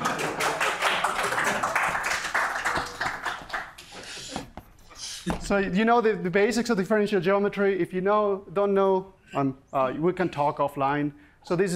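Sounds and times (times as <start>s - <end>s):
audience applause: 0.0s - 4.2s
speech: 5.5s - 11.7s.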